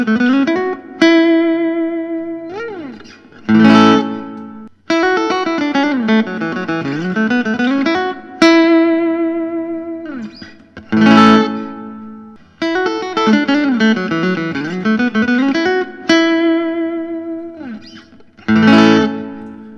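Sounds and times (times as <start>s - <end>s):
PRS hollowbody guitar with spruce top: 0.0s - 19.7s.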